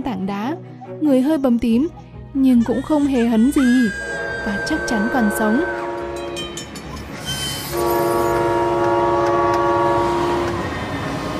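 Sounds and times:
speech: 0.0 - 5.8
train rumbling as it comes to a stop: 3.1 - 11.3
loud sustained tonal blast of a train: 3.6 - 11.3.

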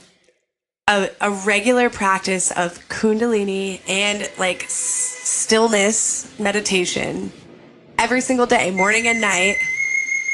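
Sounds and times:
speech: 0.9 - 7.4, 8.0 - 9.7
phone alien ringtone, high-pitched electronic tone: 8.8 - 10.3.

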